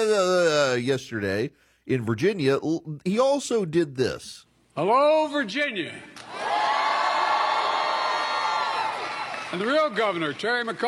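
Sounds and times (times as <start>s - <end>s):
speech: 0.0s - 6.5s, 9.5s - 10.8s
crowd cheering and shouting at a rally: 6.2s - 10.0s.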